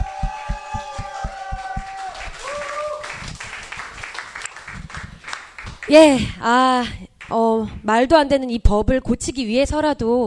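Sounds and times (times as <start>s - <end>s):
audience applause: 0.0s - 6.1s
speech: 5.9s - 10.2s.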